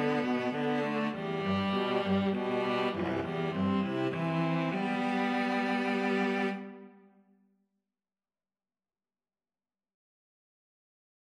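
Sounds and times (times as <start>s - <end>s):
string trio playing: 0.0s - 7.0s.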